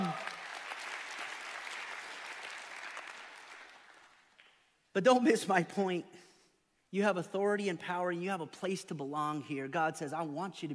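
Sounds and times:
audience clapping: 0.0s - 4.7s
speech: 5.0s - 6.3s, 6.9s - 10.7s.

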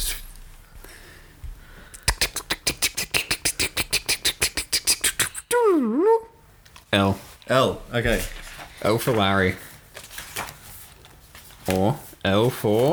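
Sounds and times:
mouth clicking imitating a spinning picker wheel: 1.9s - 5.8s
warbling vocal tone: 2.0s - 6.3s
speech: 7.0s - 9.7s, 11.7s - 12.9s.

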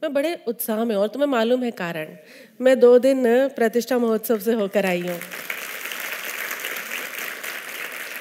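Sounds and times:
speech: 0.0s - 5.5s
crowd applauding: 5.1s - 8.2s.

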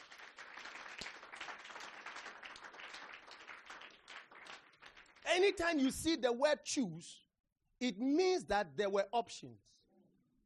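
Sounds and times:
audience clapping: 0.0s - 6.0s
speech: 5.3s - 9.7s.

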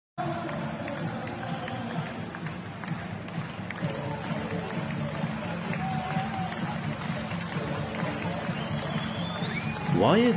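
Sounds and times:
stadium crowd of football fans cheering: 0.2s - 10.3s
whistles: 8.4s - 10.0s.

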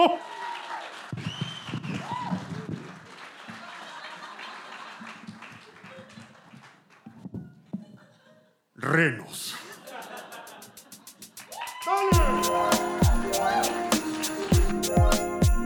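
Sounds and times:
speech: 0.0s - 0.3s, 8.9s - 9.6s
audience applause: 0.0s - 6.8s, 11.4s - 15.6s
laughter: 3.5s - 6.2s, 9.6s - 11.4s.

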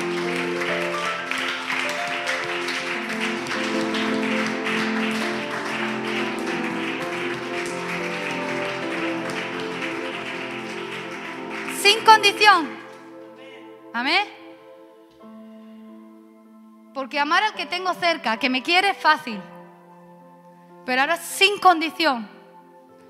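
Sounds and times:
audience applause: 0.0s - 13.3s
speech: 12.3s - 12.8s, 14.0s - 14.3s, 17.1s - 19.5s, 20.8s - 22.4s.

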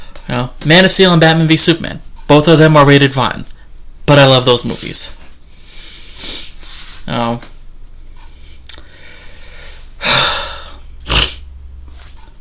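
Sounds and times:
speech: 0.3s - 3.5s, 4.1s - 5.2s, 7.1s - 7.5s
person breathing heavily while catching their breath: 5.5s - 7.1s, 8.3s - 10.9s.

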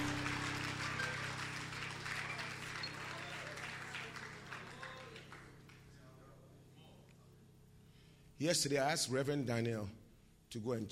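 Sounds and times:
audience clapping: 0.0s - 6.0s
low electrical hum: 0.0s - 10.9s
speech: 8.4s - 10.9s.

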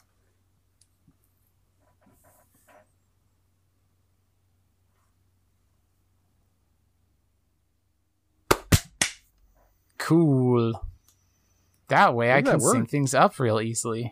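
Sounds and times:
hand clap for syncing audio: 8.5s - 9.2s
speech: 10.1s - 10.9s, 11.9s - 14.0s.

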